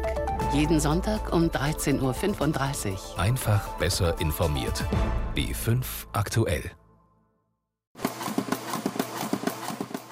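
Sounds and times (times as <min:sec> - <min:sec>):
speech: 0:00.5 - 0:06.8
artificial heart pumping with mechanical clicks and soft thumps: 0:08.0 - 0:10.1.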